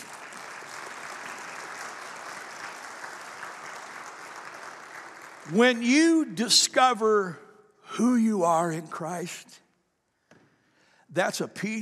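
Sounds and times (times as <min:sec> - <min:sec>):
round of applause: 0:00.0 - 0:07.3
speech: 0:05.5 - 0:07.4, 0:08.0 - 0:09.6, 0:11.1 - 0:11.8.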